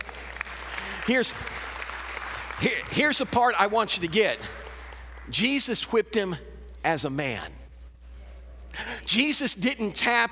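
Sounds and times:
audience applause: 0:00.0 - 0:05.4
speech: 0:01.1 - 0:01.7, 0:02.6 - 0:04.6, 0:05.3 - 0:07.6, 0:09.1 - 0:10.2.

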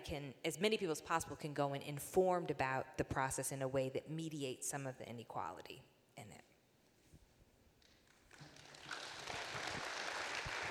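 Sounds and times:
speech: 0:00.1 - 0:06.5
audience applauding: 0:07.8 - 0:10.6.

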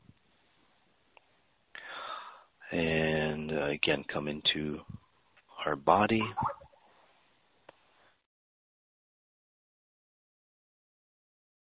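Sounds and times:
deep breath in: 0:01.8 - 0:02.5
speech: 0:02.7 - 0:05.0, 0:05.7 - 0:06.6.

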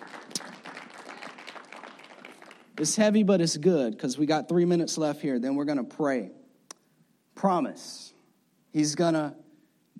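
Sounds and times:
crowd clapping: 0:00.0 - 0:03.2
speech: 0:02.8 - 0:06.4, 0:07.4 - 0:08.1, 0:08.7 - 0:09.4.

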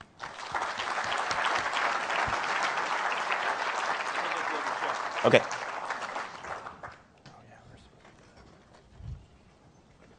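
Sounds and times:
live audience clapping for guests at an industry event: 0:00.0 - 0:07.1
speech: 0:05.2 - 0:05.6.

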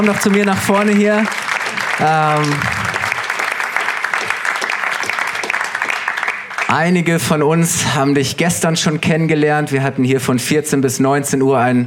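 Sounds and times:
speech: 0:00.0 - 0:02.8, 0:06.7 - 0:11.8
audience applause: 0:00.0 - 0:07.0.

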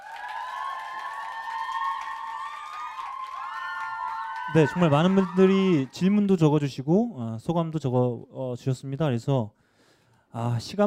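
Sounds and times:
audience applause and cheering: 0:00.0 - 0:06.6
speech: 0:04.5 - 0:09.6, 0:10.3 - 0:10.8.

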